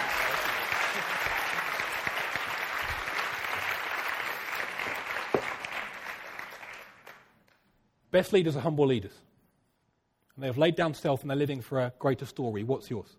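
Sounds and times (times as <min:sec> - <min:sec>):
audience applause: 0:00.0 - 0:07.4
speech: 0:08.2 - 0:09.3, 0:10.4 - 0:13.1.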